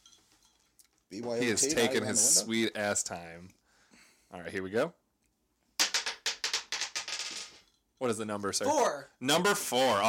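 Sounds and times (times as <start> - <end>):
speech: 1.1 - 3.6, 4.3 - 5.0, 8.0 - 10.0
dice being rolled: 5.8 - 7.7.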